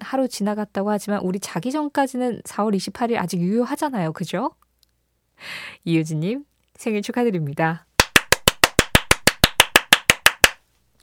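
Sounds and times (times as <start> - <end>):
speech: 0.1 - 4.6, 5.4 - 7.9
clapping: 8.0 - 10.6.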